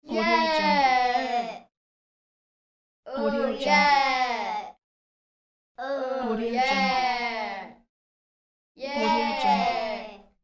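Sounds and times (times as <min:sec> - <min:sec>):
children shouting yeah: 0:00.1 - 0:01.6, 0:03.1 - 0:04.7, 0:06.6 - 0:07.7, 0:08.8 - 0:10.3.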